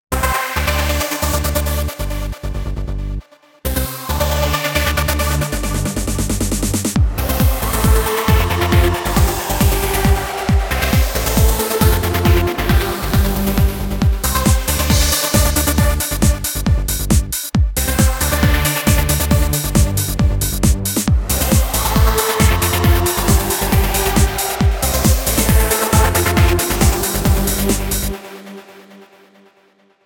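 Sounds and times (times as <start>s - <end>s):
trance music: 0.1s - 30.0s.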